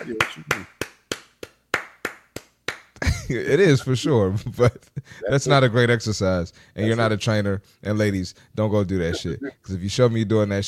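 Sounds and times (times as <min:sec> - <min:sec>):
speech: 0:00.0 - 0:00.8, 0:03.3 - 0:10.6
sharp hand claps: 0:00.0 - 0:03.2.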